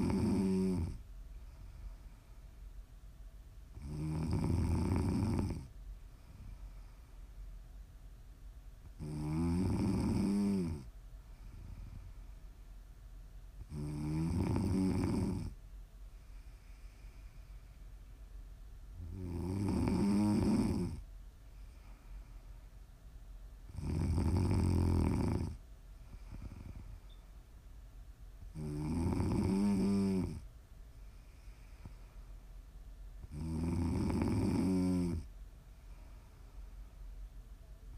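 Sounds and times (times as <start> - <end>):
snoring: 0.0 - 1.0, 3.7 - 5.7, 9.0 - 12.1, 13.6 - 15.6, 19.0 - 21.0, 23.7 - 27.0, 28.5 - 30.5, 33.2 - 35.3
quiet breathing: 0.0 - 37.9.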